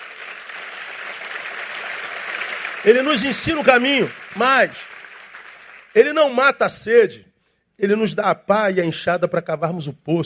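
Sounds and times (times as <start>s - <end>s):
audience applause: 0.0s - 6.2s
speech: 2.8s - 4.9s, 6.0s - 10.2s.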